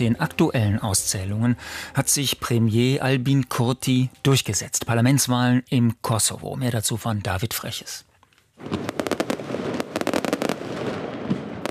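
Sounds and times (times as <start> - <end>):
speech: 0.0 - 9.0
fireworks at election celebration: 8.6 - 11.6.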